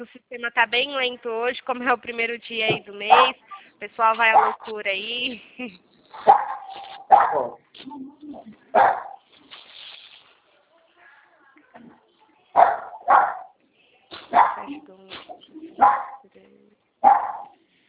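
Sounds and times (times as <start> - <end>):
speech: 0.0 - 9.1, 12.6 - 13.4, 14.3 - 16.1
dog barking: 3.1 - 3.4, 4.3 - 4.7, 6.2 - 7.6, 8.7 - 9.2, 12.6 - 13.6, 14.3 - 14.8, 15.7 - 16.2, 17.0 - 17.6.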